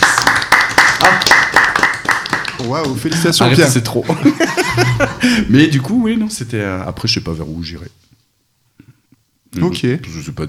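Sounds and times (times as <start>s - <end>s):
clapping hands: 0.0s - 3.8s
speech: 2.6s - 8.1s, 9.5s - 10.4s
laughter: 3.0s - 5.5s.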